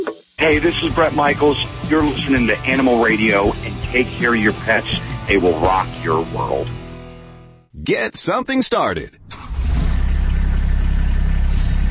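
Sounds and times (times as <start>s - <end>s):
speech: 0.4s - 6.8s, 7.8s - 9.2s
Kubota RTV utility vehicle engine idling: 9.3s - 11.8s.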